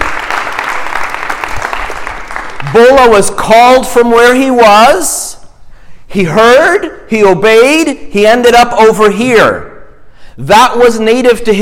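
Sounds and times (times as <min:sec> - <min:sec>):
audience applause: 0:00.0 - 0:02.8
speech: 0:02.7 - 0:05.3, 0:06.1 - 0:09.7, 0:10.4 - 0:11.6.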